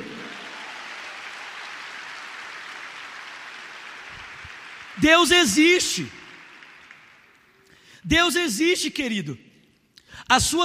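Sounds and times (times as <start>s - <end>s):
audience applause: 0.0s - 7.6s
speech: 5.0s - 6.2s, 8.1s - 9.5s, 10.3s - 10.6s.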